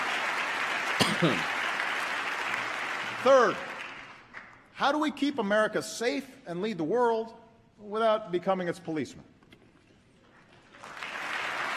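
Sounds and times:
political debate audience clapping and shouting: 0:00.0 - 0:04.7, 0:10.6 - 0:11.7
speech: 0:01.2 - 0:01.6, 0:03.2 - 0:03.7, 0:04.8 - 0:09.3.

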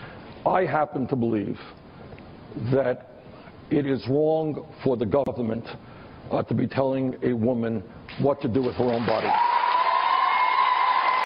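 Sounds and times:
speech: 0:00.4 - 0:01.8, 0:02.6 - 0:03.1, 0:03.7 - 0:09.5
women in the audience cheering wildly: 0:09.2 - 0:11.2.

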